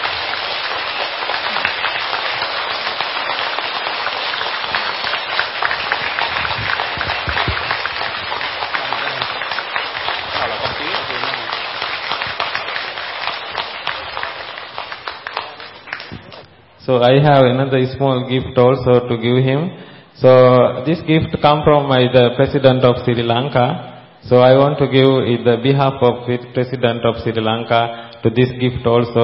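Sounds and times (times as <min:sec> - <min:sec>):
audience applause: 0:00.0 - 0:16.5
speech: 0:16.9 - 0:29.2.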